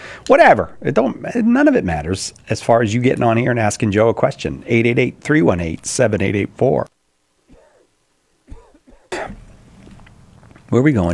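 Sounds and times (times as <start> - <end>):
speech: 0.3 - 7.0, 10.7 - 11.1
heavy coughing: 7.5 - 7.9, 8.5 - 9.6.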